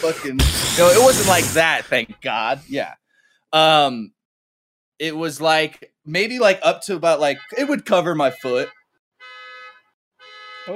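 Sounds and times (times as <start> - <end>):
speech: 0.0 - 4.2, 5.0 - 8.8
car alarm: 7.2 - 10.7.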